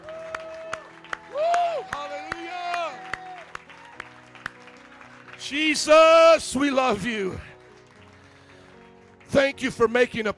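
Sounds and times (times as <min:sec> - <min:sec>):
audience cheering: 0:00.0 - 0:04.7
audience applauding: 0:00.0 - 0:10.3
speech: 0:05.4 - 0:07.5, 0:09.4 - 0:10.3.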